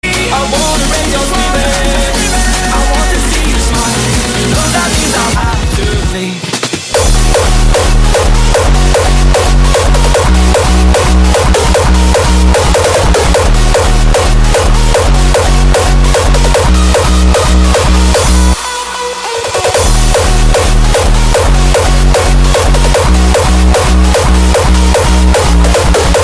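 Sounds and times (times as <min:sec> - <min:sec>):
hardstyle music: 0:00.0 - 0:26.2.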